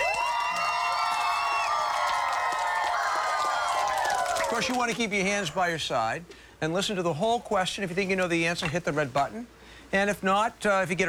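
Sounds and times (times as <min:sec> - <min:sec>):
high whoops and shouts: 0:00.0 - 0:05.0
crowd applauding: 0:00.0 - 0:05.8
speech: 0:04.5 - 0:11.0.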